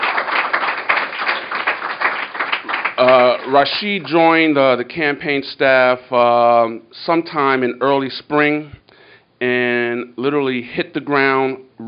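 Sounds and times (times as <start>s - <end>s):
audience applause: 0.0s - 4.1s
speech: 3.0s - 8.8s, 9.4s - 11.8s.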